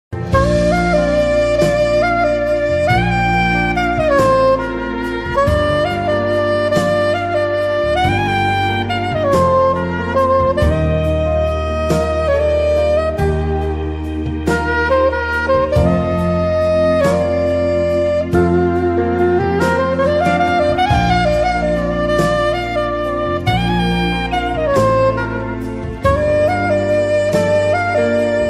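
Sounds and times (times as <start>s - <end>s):
trumpet: 0.1s - 28.4s.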